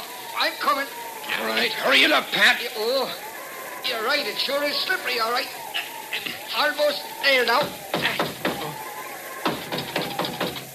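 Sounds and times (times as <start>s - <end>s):
speech: 1.6s - 5.6s, 6.2s - 8.0s
sharp signal knocks rapped in an uneven pattern: 7.5s - 8.8s, 9.4s - 10.7s.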